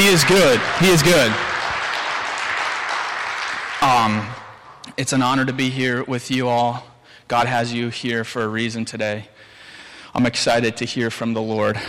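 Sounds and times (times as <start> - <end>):
audience applause: 0.0 - 4.8
speech: 0.1 - 1.5, 3.8 - 4.4, 5.0 - 9.3, 10.1 - 11.8.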